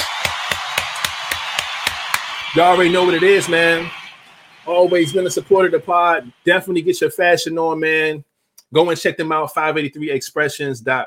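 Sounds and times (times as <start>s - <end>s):
hand claps: 0.0s - 3.9s
speech: 2.5s - 4.0s, 4.7s - 11.0s.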